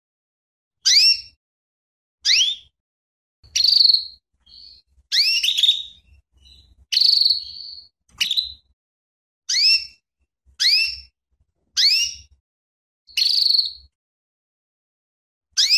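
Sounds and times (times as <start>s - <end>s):
female canary calling with sharp sweeping chirps and buzzy notes: 0.8s - 1.4s, 2.2s - 2.8s, 3.4s - 8.8s, 9.5s - 12.4s, 13.1s - 14.0s, 15.5s - 15.7s.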